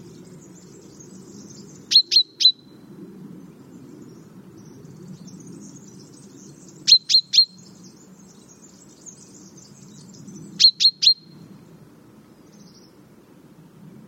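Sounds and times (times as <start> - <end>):
common chaffinch Fringilla coelebs calling: 0.0 - 2.7, 5.7 - 11.4.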